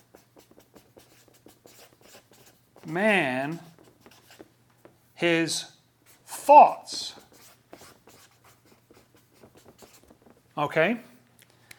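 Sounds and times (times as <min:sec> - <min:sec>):
writing on paper: 0:00.0 - 0:05.0, 0:06.1 - 0:10.4
speech: 0:02.8 - 0:03.7, 0:05.2 - 0:05.7, 0:06.5 - 0:07.2, 0:10.6 - 0:11.1.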